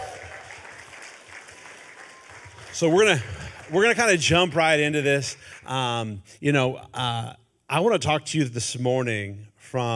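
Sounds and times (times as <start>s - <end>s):
audience applause: 0.0s - 5.3s
speech: 2.8s - 9.9s.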